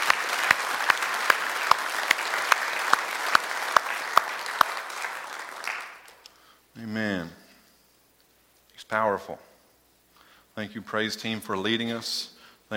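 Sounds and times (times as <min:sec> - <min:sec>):
audience clapping in praise: 0:00.0 - 0:06.2
speech: 0:08.9 - 0:09.5, 0:10.6 - 0:12.7.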